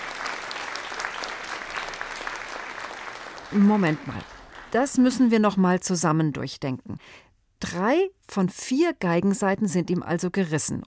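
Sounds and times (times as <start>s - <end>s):
large audience applauding: 0.0s - 5.2s
speech: 3.5s - 10.8s.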